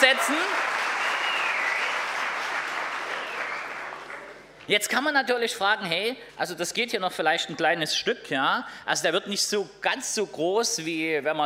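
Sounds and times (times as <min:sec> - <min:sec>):
audience applause: 0:00.0 - 0:04.4
speech: 0:04.7 - 0:11.4.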